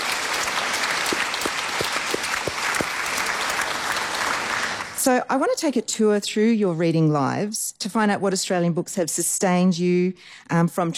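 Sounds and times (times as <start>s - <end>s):
audience applause: 0.0s - 5.0s
speech: 5.0s - 10.9s.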